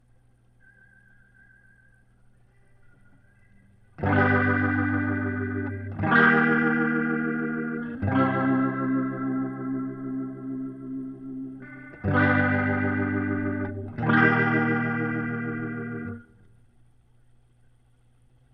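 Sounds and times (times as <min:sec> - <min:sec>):
guitar through Leslie rotary speaker: 0:02.6 - 0:16.9.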